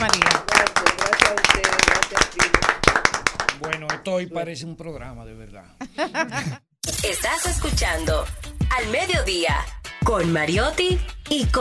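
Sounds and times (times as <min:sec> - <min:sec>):
applause: 0:00.0 - 0:04.1
speech: 0:04.1 - 0:11.5
laughter: 0:05.8 - 0:06.7.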